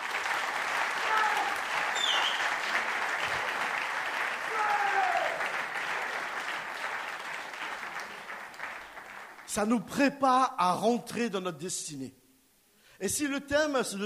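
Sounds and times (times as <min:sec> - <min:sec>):
crowd applauding: 0:00.0 - 0:09.6
whistles and cheers: 0:01.0 - 0:02.7
speech: 0:09.5 - 0:12.2, 0:13.0 - 0:14.0.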